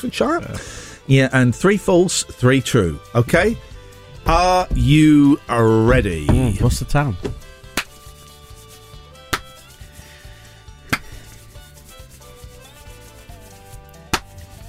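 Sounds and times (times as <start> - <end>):
speech: 0.0 - 7.4
hand claps: 7.2 - 8.1, 9.3 - 9.6, 10.9 - 11.2, 14.1 - 14.4.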